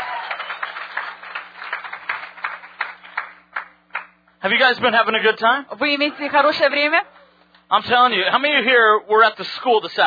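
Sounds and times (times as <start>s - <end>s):
crowd clapping hands: 0.0s - 4.4s
speech: 4.4s - 7.1s, 7.7s - 10.0s.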